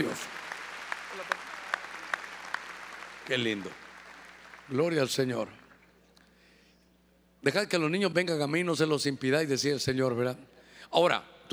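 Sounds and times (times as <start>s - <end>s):
speech: 0.0s - 0.3s, 3.3s - 3.8s, 4.7s - 5.6s, 7.4s - 11.5s
audience applauding: 0.0s - 4.8s.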